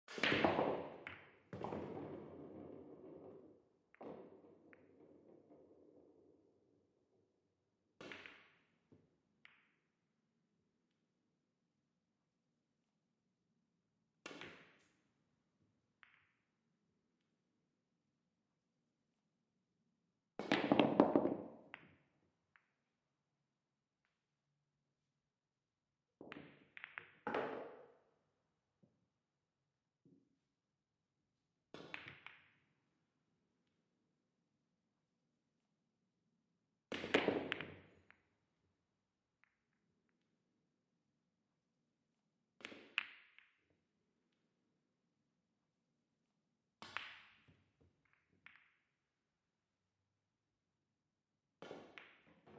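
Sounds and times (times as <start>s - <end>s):
pool game billiard balls: 0.1s - 10.9s, 14.1s - 17.4s, 20.3s - 24.4s, 26.1s - 29.3s, 31.7s - 34.2s, 36.8s - 40.3s, 42.5s - 44.6s, 46.7s - 49.3s, 51.5s - 52.5s.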